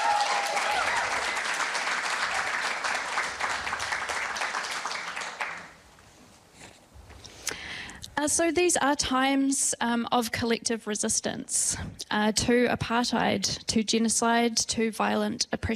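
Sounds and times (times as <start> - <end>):
audience applauding: 0.0 - 5.8
speech: 8.2 - 15.7.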